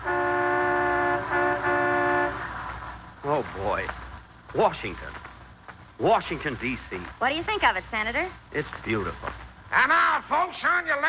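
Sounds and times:
sightseeing bus horn honking: 0:00.0 - 0:02.7
low traffic rumble: 0:00.0 - 0:11.0
speech: 0:03.8 - 0:05.2, 0:06.0 - 0:11.0.

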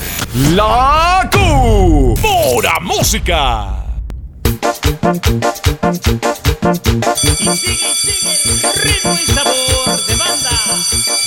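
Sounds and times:
speech: 0:00.3 - 0:03.7, 0:04.8 - 0:10.5
school recess bell ringing: 0:07.1 - 0:11.2.

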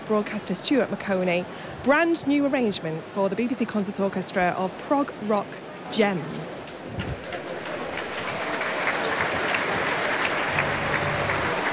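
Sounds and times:
speech: 0:00.1 - 0:07.1
large concert hall audience applause: 0:07.0 - 0:11.7.

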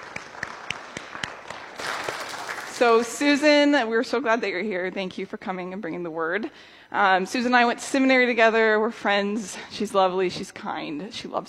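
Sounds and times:
congregation applauding to welcome a guest preacher: 0:00.0 - 0:03.2
speech: 0:02.8 - 0:11.4.

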